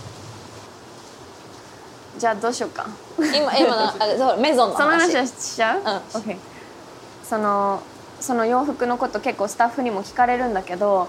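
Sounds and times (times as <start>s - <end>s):
heavy tropical downpour: 0.0s - 9.2s
speech: 2.2s - 6.5s, 7.3s - 11.0s.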